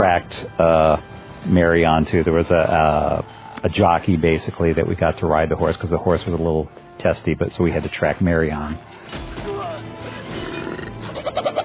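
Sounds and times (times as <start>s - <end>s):
speech: 0.0s - 9.3s
orc call from a human voice echoing off buildings: 9.4s - 11.6s.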